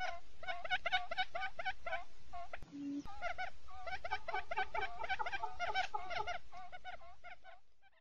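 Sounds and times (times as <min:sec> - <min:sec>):
quail clucking in chorus: 0:00.0 - 0:07.9.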